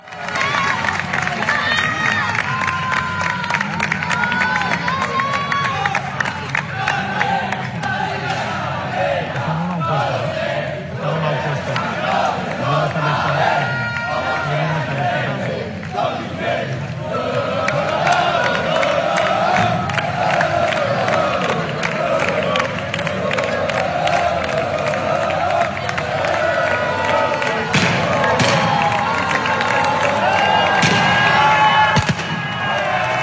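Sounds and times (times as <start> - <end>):
football fans cheering welcoming Mallorca players: 0.0 - 33.2.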